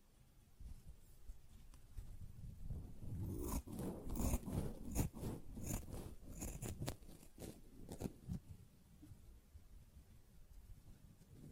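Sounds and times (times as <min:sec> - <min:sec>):
sponge being handled, scratching and squishing: 0:03.0 - 0:08.4.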